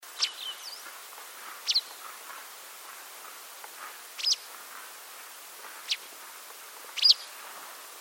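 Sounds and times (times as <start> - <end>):
white wagtail calls: 0.1 - 5.0, 5.6 - 6.2, 6.9 - 7.4.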